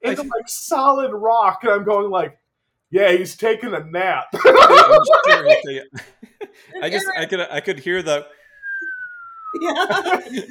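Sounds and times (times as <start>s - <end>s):
speech: 0.1s - 8.4s, 9.5s - 10.4s
laughter and chatter: 4.4s - 5.8s, 9.6s - 10.4s
slide whistle: 8.4s - 9.6s.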